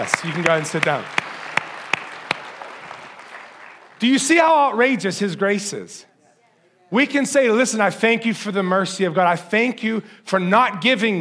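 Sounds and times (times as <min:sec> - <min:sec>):
speech: 0:00.0 - 0:01.2, 0:04.0 - 0:06.1, 0:06.9 - 0:11.2
hand claps: 0:00.0 - 0:04.0.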